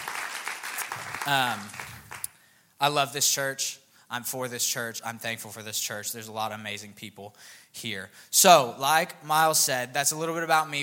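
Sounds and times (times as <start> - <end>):
audience applauding: 0.0 - 2.3
speech: 1.2 - 1.8, 2.8 - 10.8.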